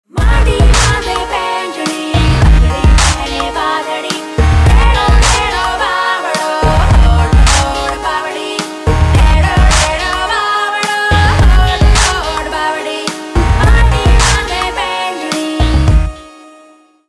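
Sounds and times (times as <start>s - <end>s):
music: 0.0s - 17.0s.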